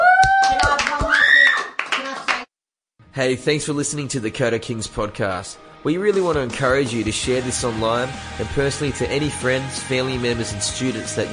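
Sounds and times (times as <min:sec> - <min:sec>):
group clapping: 0:00.0 - 0:02.5
speech: 0:03.2 - 0:11.3.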